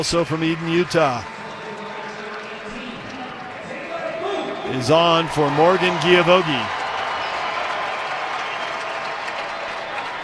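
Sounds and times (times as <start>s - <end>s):
speech: 0.0s - 1.4s, 4.7s - 6.8s
stadium crowd applauding a substitute: 0.0s - 10.2s.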